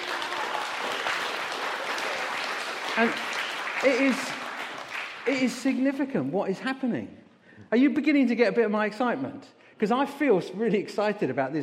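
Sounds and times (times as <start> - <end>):
audience applause for foster carers: 0.0 - 5.8
speech: 3.0 - 4.4, 5.3 - 11.6.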